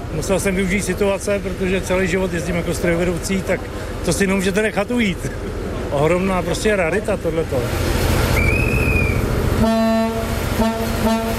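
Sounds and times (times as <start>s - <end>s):
low engine rumble: 0.0s - 11.3s
speech: 0.1s - 8.5s, 10.6s - 11.3s
thin high whistle: 8.3s - 9.3s
historic diesel train horn: 8.6s - 11.3s.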